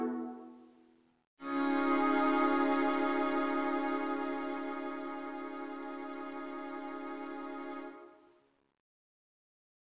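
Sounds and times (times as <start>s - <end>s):
string quartet interlude: 0.0s - 0.6s, 1.4s - 8.2s.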